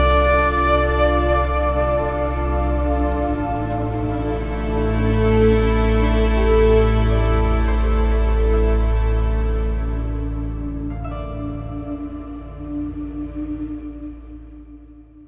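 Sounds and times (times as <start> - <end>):
music at 100 BPM: 0.0 - 15.2.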